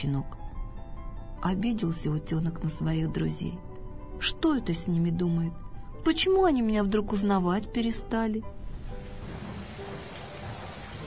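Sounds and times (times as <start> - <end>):
speech: 0.0 - 0.4, 1.4 - 8.6
warm ringing summer rain pattering: 8.6 - 11.0.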